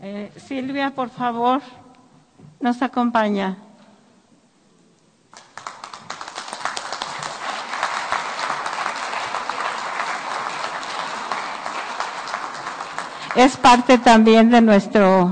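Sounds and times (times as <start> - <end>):
speech: 0.0 - 1.8, 2.6 - 3.6, 13.4 - 15.2
audience applause: 5.3 - 13.9.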